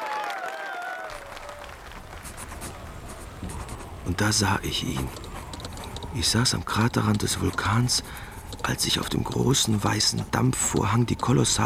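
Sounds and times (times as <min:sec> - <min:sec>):
audience in a hall cheering: 0:00.0 - 0:04.1
speech: 0:04.1 - 0:05.2, 0:06.1 - 0:11.6.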